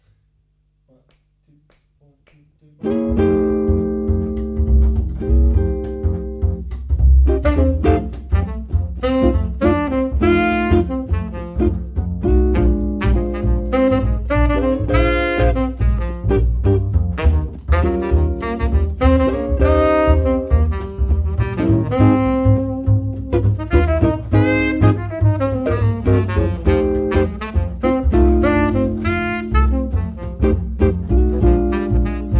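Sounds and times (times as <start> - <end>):
musical trio: 2.8 - 32.3.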